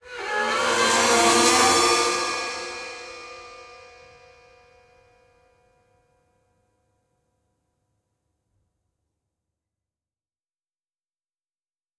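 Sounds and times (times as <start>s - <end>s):
musical stinger: 0.1s - 3.8s.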